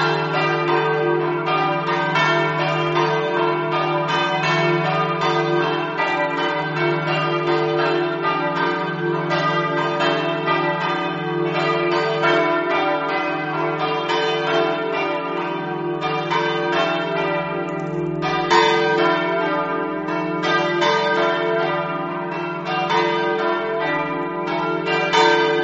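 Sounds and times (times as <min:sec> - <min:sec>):
bells ringing in Rosazzo: 0:00.0 - 0:25.6.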